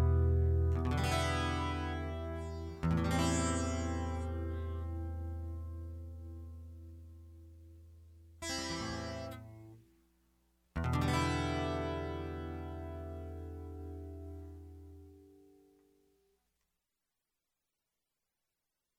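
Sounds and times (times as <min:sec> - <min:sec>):
guitar loop: 0:00.0 - 0:09.8, 0:10.8 - 0:15.7.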